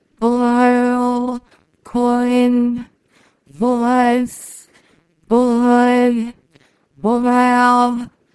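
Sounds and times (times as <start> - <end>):
person singing: 0.2 - 2.9, 3.5 - 4.6, 5.3 - 6.4, 7.0 - 8.1.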